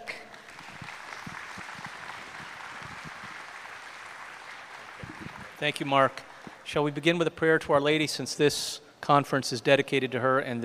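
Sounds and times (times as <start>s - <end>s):
audience applause: 0.0s - 6.6s
speech: 5.6s - 10.6s.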